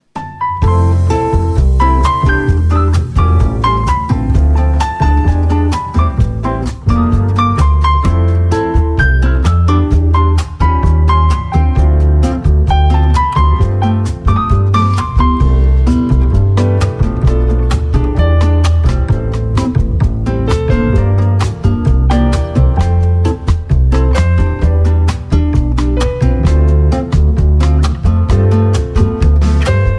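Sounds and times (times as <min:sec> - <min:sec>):
jazz music: 0:00.0 - 0:29.9.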